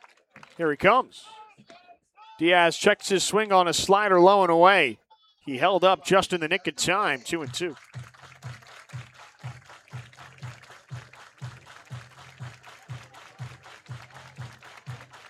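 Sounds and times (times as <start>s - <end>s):
stadium fans clapping along to music: 0.0s - 1.0s, 6.5s - 15.2s
speech: 0.6s - 1.7s, 2.4s - 8.1s.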